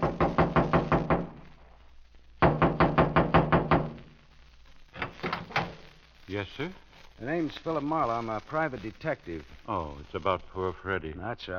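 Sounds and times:
knocking on a trailer door: 0:00.0 - 0:01.3, 0:02.4 - 0:04.0
speech: 0:06.4 - 0:11.5.

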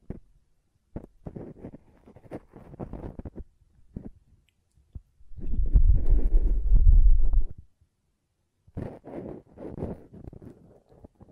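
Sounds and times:
scratchy rustles and clicks of ear cleaning: 0:00.9 - 0:04.2, 0:05.4 - 0:07.7, 0:08.7 - 0:11.3.

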